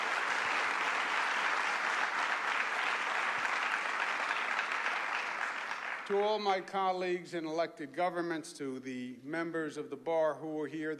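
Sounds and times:
audience applause: 0:00.0 - 0:06.2
speech: 0:06.1 - 0:10.9.

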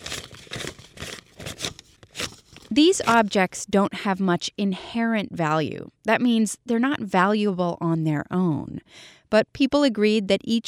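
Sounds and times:
paper dollar bills rustling and crinkling: 0:00.0 - 0:03.6
speech: 0:02.7 - 0:10.6.

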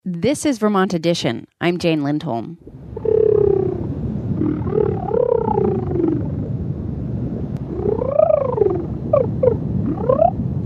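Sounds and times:
speech: 0:00.0 - 0:02.8
sea life sounds in a virtual reality game: 0:02.6 - 0:10.6.

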